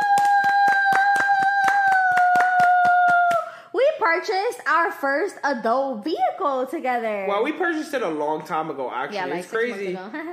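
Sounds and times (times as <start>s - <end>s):
hands clapping: 0.0s - 3.6s
speech: 4.1s - 10.3s.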